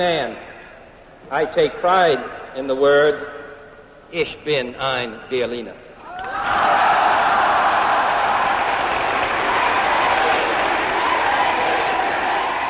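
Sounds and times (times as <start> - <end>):
speech: 0.0 - 0.5, 1.2 - 3.4, 4.1 - 5.8
crowd cheering after speech: 6.0 - 12.6.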